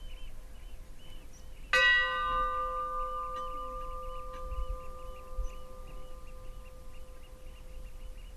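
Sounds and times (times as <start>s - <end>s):
Stadarfellskirkja funeral bell ringing: 1.7s - 8.0s.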